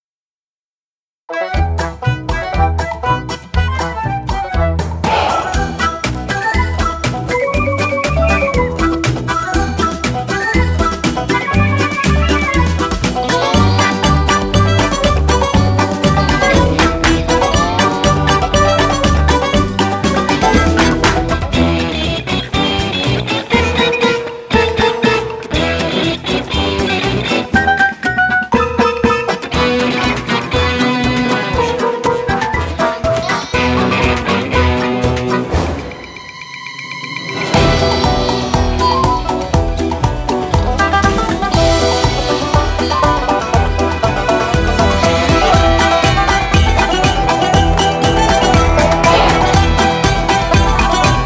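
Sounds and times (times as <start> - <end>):
theme music: 1.3 - 51.2.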